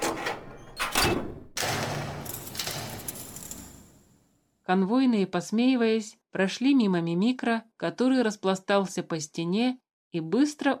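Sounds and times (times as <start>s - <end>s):
door slamming: 0.0s - 4.0s
speech: 4.7s - 10.7s.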